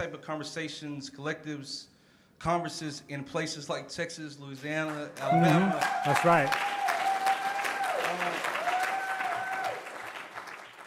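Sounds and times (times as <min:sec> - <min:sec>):
speech: 0:00.0 - 0:06.8
applause: 0:04.8 - 0:10.8.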